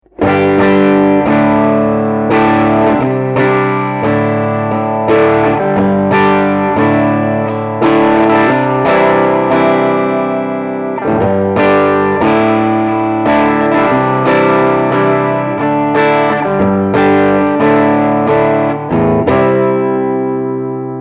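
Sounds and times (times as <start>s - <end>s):
AC30 amplifier crunch guitar: 0.0s - 21.0s.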